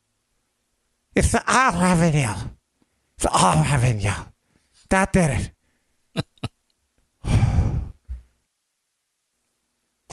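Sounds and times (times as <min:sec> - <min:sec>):
speech: 0:01.2 - 0:02.6, 0:03.2 - 0:04.3, 0:04.9 - 0:05.6
person sniffling: 0:07.2 - 0:08.2.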